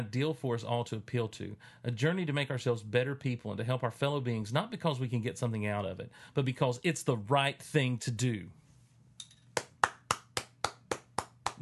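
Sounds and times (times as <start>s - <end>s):
speech: 0.0s - 8.6s
applause claps: 9.6s - 11.5s.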